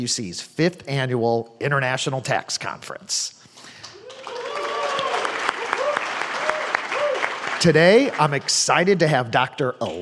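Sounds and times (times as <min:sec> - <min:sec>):
speech: 0:00.0 - 0:03.4, 0:07.6 - 0:09.9
live studio audience applauding at an international tax conference in Dana Point California: 0:03.8 - 0:09.0.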